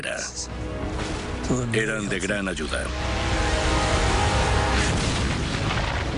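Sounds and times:
speech: 0.0 - 3.3
rockets released by Typhoon aircraft exploding: 4.2 - 6.1.

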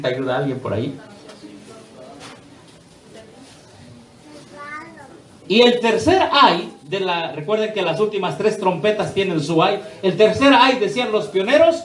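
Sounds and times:
speech: 0.0 - 1.2, 5.5 - 11.8
child crying in the audience: 4.6 - 5.2.

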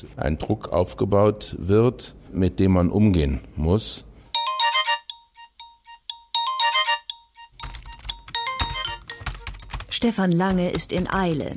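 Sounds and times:
speech: 0.0 - 4.1, 10.0 - 11.5
bright electronic ringtone-like melody: 4.3 - 9.9
rapid computer keyboard typing of keywords into a blog entry form: 6.3 - 11.5.

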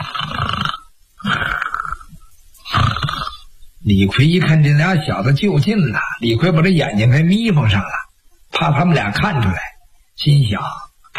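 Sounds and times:
voice imitating snoring: 0.0 - 3.5
speech: 3.9 - 8.0, 8.6 - 11.1.

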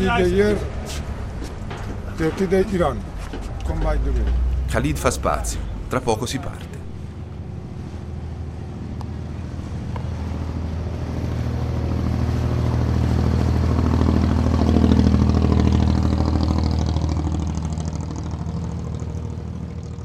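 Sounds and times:
speech: 0.0 - 1.0, 2.2 - 6.7
speedboat engine roar: 2.8 - 20.0.

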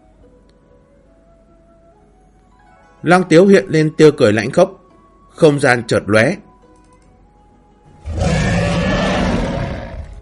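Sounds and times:
speech: 3.0 - 4.8, 5.4 - 6.5
giant beast roaring: 8.0 - 10.2.

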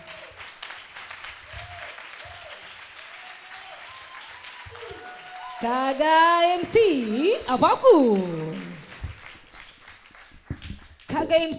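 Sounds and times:
audience applauding a poet at a poetry evening: 0.0 - 11.5
cheers and whistles: 1.5 - 5.7
speech: 5.6 - 8.7, 11.3 - 11.5.

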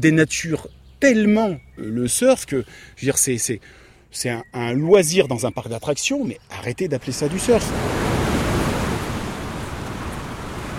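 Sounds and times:
speech: 0.0 - 8.0
ocean waves washing onto a sandy surf beach at Parlementia: 7.0 - 10.7.

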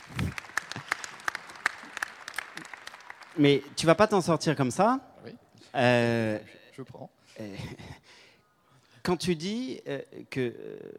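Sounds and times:
audience applause: 0.0 - 3.5
speech: 3.4 - 7.9, 9.0 - 10.9.

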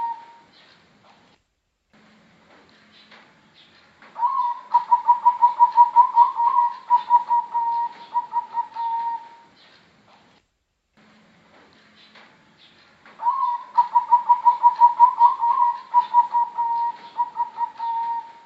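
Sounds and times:
Bangkok type zebra dove singing quick evenly pulsed coos: 0.0 - 0.5, 4.2 - 9.5, 13.2 - 18.4.

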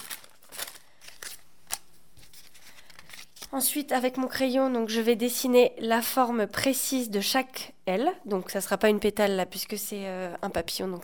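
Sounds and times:
thick paper being picked up and handled for drawing butterfly wings: 0.0 - 3.5
speech: 3.5 - 11.0.

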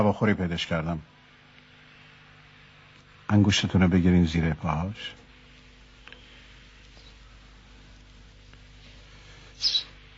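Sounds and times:
speech: 0.0 - 1.2, 3.3 - 5.2
tame pet sparrow chirp: 9.5 - 10.0.

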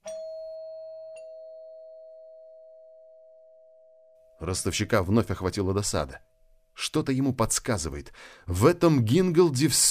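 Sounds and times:
soft doorbell chime ringing inside: 0.0 - 5.2
speech: 4.4 - 9.9.

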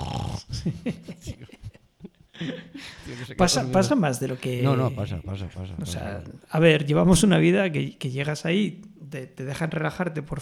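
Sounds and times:
voice imitating an audience member snoring at an orchestra concert: 0.0 - 0.6
laughter: 0.5 - 3.7
speech: 0.6 - 1.5, 2.4 - 10.3.

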